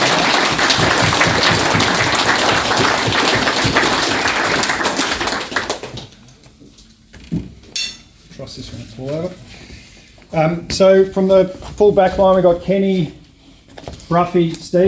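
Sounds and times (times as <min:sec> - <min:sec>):
crowd applauding: 0:00.0 - 0:06.2
speech: 0:10.4 - 0:13.2, 0:14.1 - 0:14.8.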